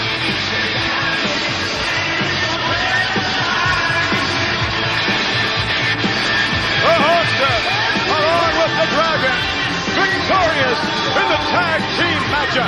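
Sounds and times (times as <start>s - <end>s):
large arena crowd roaring and cheering: 0.0s - 12.6s.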